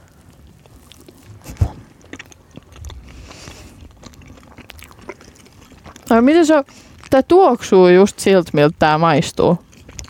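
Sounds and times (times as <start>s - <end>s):
crunchy bite into a long-lasting pastry treat: 0.0s - 6.1s, 9.6s - 10.0s
chewing a long-lasting pastry treat: 0.0s - 10.0s
speech: 6.2s - 9.7s.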